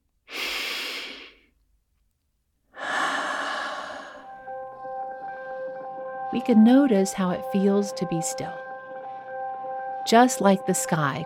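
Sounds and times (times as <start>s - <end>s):
long slow breath in and out: 0.3s - 1.5s, 2.8s - 4.5s
speech: 6.3s - 8.6s, 10.1s - 11.2s.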